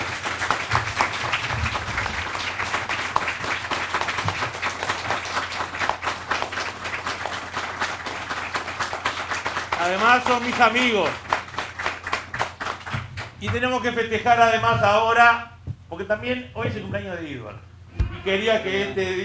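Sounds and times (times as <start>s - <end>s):
audience applause at a municipal conference in Maldonado: 0.0s - 13.7s
speech: 9.9s - 11.2s, 13.4s - 19.2s.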